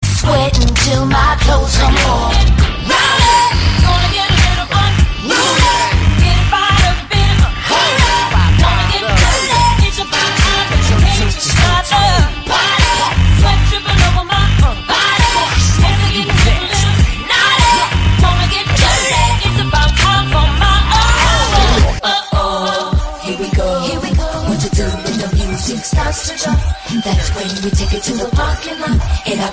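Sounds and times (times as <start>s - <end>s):
RnB music: 0.0s - 29.5s.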